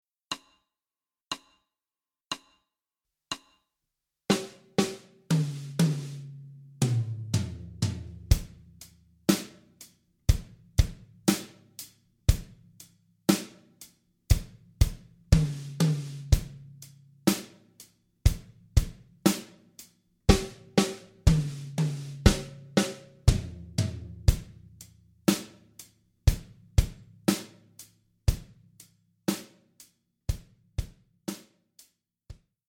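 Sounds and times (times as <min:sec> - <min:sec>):
solo practice: 0:04.3 - 0:29.9.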